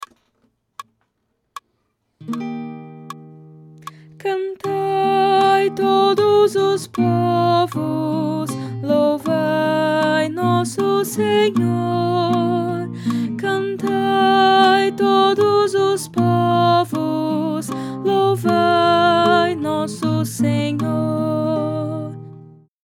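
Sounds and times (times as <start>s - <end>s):
soprano singing: 4.2s - 22.4s.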